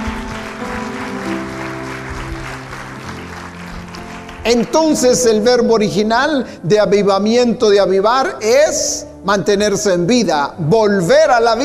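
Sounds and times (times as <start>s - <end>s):
audience clapping: 0.0s - 5.6s
speech: 4.4s - 11.6s.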